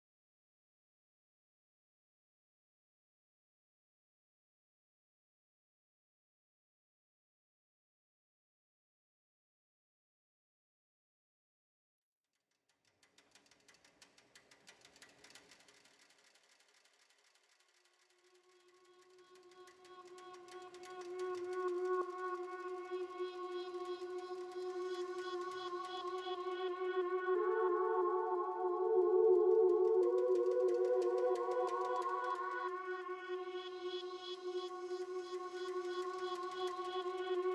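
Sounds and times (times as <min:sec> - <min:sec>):
synthesizers: 0:19.0 - 0:37.5.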